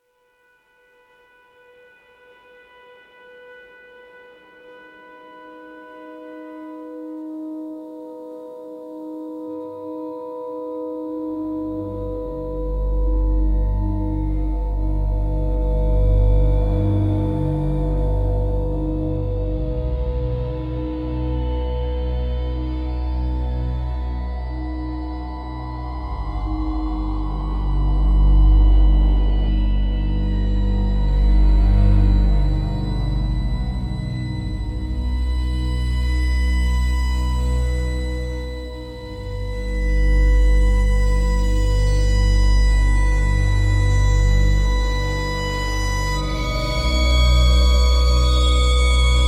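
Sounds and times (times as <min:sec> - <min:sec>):
spiritual spooky soundscape: 0:09.6 - 0:49.2.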